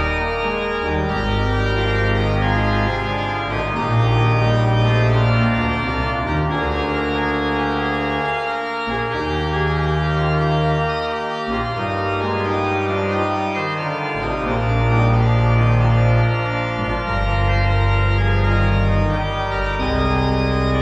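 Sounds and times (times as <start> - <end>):
classical prelude in E-flat major: 0.0 - 20.7.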